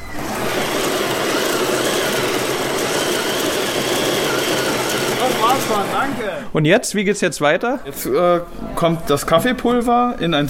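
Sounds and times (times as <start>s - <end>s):
exercise bike home trainer being pedalled: 0.0s - 6.5s
speech: 5.7s - 10.4s.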